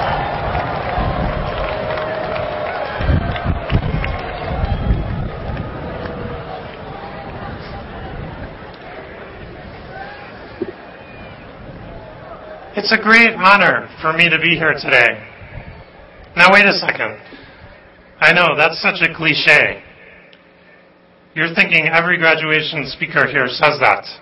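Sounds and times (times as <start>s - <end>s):
graduation audience applauding: 0.0s - 9.5s
graduation audience cheering: 0.0s - 17.0s
speech: 12.8s - 15.3s, 16.4s - 17.4s, 18.2s - 19.8s, 21.4s - 24.2s.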